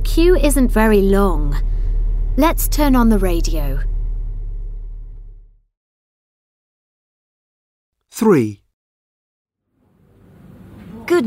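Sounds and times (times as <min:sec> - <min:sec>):
car engine idling in slow city traffic: 0:00.0 - 0:05.6
speech: 0:00.2 - 0:01.7, 0:02.4 - 0:03.9, 0:08.2 - 0:08.6.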